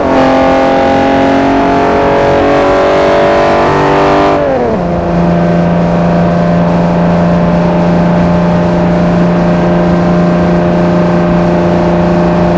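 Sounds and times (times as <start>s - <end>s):
vehicles cruising: 0.0s - 12.5s.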